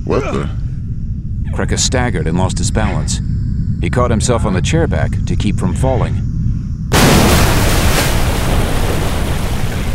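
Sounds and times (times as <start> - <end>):
speech: 0.1 - 0.6, 1.5 - 6.3
explosion at base of mountain: 6.9 - 9.9
heavy sustained rumbling roar of debris: 6.9 - 9.9.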